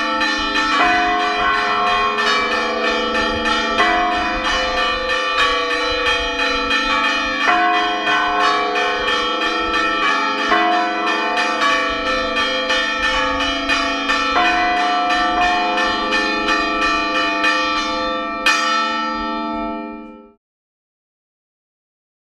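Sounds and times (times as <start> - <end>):
general peal rung on four bells of a bell tower: 0.0 - 20.4.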